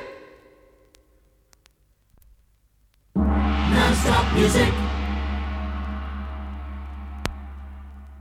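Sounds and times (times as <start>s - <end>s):
jingle: 3.2s - 8.2s.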